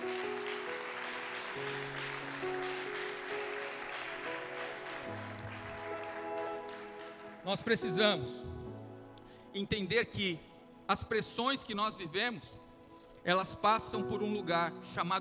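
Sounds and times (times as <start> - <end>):
audience applause: 0.0 - 7.8
speech: 7.5 - 8.7, 9.5 - 12.6, 13.2 - 15.1.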